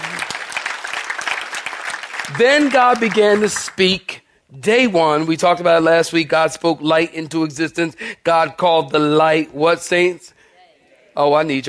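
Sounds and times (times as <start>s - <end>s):
audience clapping hands: 0.0s - 4.0s
speech: 2.3s - 10.3s, 11.2s - 11.6s.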